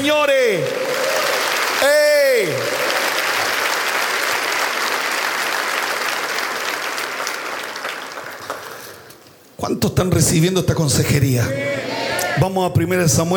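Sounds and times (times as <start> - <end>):
speech: 0.0 - 0.8, 9.7 - 11.8, 12.4 - 13.3
audience applause: 0.4 - 9.2.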